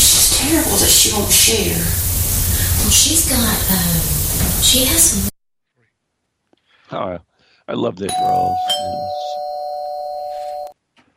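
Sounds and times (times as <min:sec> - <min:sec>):
speech: 0:00.4 - 0:05.3, 0:06.9 - 0:09.2
doorbell ringing with an electronic tone: 0:08.1 - 0:10.8.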